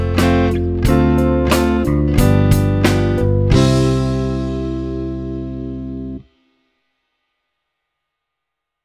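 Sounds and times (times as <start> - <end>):
musical chord: 0.0 - 6.3.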